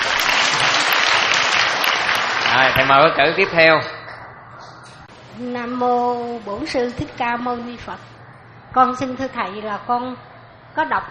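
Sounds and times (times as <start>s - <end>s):
Buddhist lay followers applauding at a dharma talk: 0.0s - 3.2s
speech: 2.6s - 4.0s, 5.4s - 8.1s, 8.7s - 11.1s.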